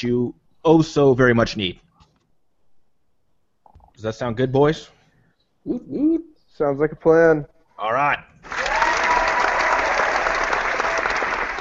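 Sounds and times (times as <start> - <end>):
speech: 0.0 - 1.8, 4.0 - 5.0, 5.6 - 8.6
studio audience cheering and applauding: 8.4 - 11.5.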